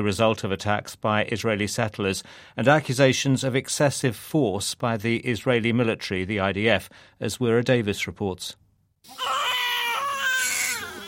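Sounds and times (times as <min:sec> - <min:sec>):
speech: 0:00.0 - 0:09.4
newborn baby crying in a hospital in Nablus: 0:09.1 - 0:11.0.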